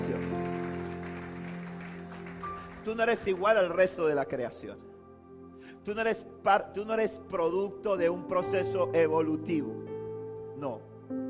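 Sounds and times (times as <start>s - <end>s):
applause: 0.0s - 4.2s
speech: 2.8s - 4.9s, 5.8s - 9.8s, 10.6s - 11.2s.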